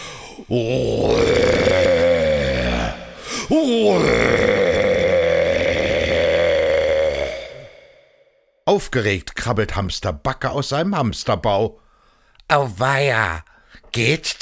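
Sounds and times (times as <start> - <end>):
speech: 0.4 - 1.4, 3.5 - 4.6, 8.7 - 11.8, 12.5 - 14.4
man imitating a rutting stag's roar: 0.5 - 8.0.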